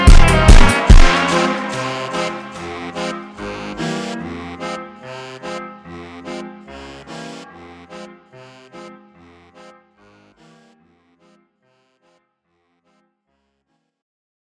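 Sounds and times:
super slowed funk music: 0.0s - 11.0s.

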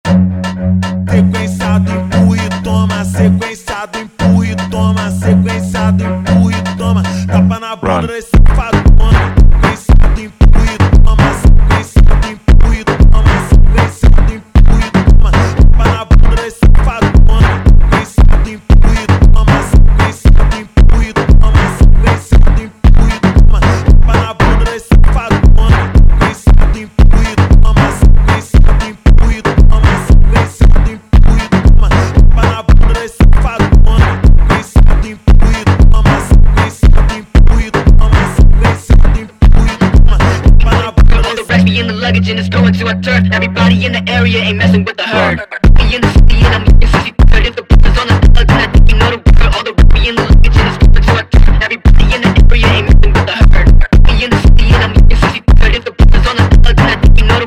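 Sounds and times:
slowed funk music: 0.0s - 44.8s, 45.7s - 57.4s.

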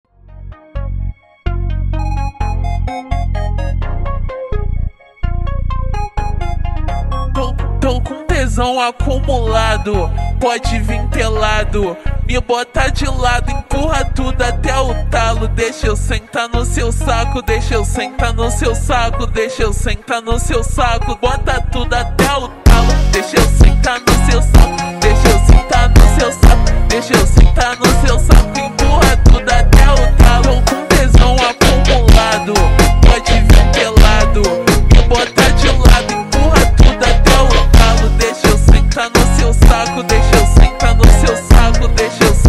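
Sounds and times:
slowed brega funk music: 0.2s - 42.4s.

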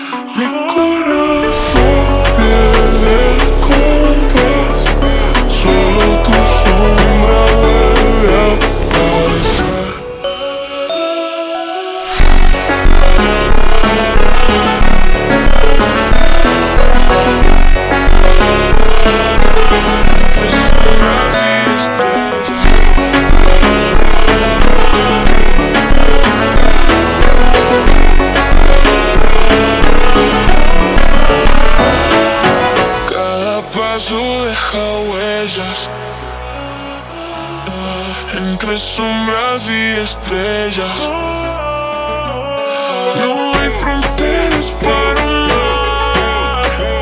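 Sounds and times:
slowed funk music: 0.3s - 47.0s.

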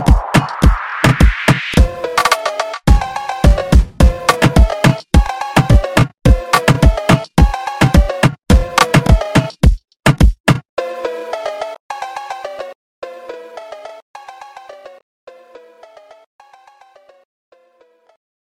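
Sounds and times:
slowed funk music: 0.0s - 9.6s.

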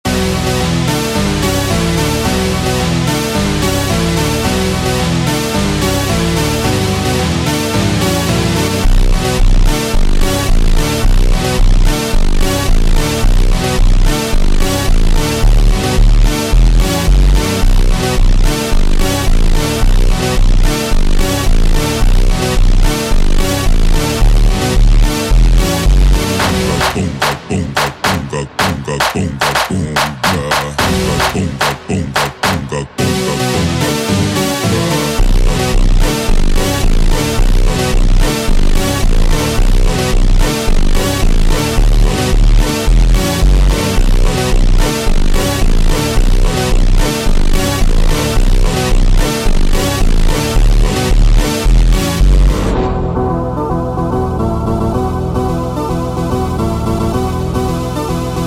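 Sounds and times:
automotivo super slowed funk: 0.1s - 58.4s.

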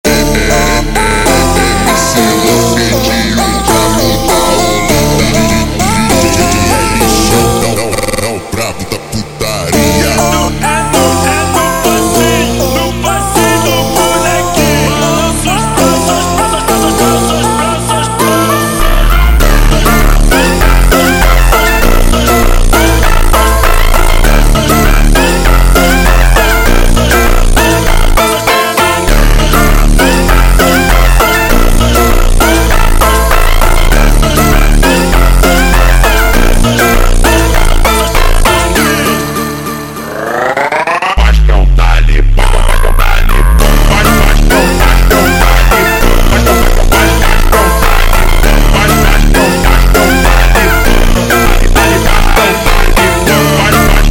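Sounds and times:
super slowed montagem funk music: 0.0s - 54.0s.

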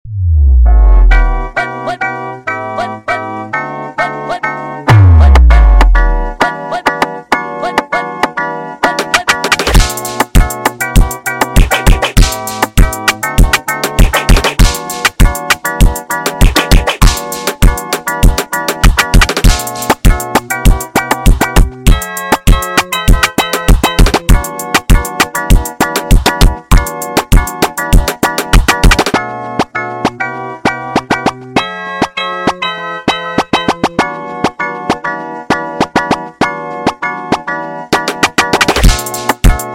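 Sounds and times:
sped up brega music: 0.2s - 39.7s.

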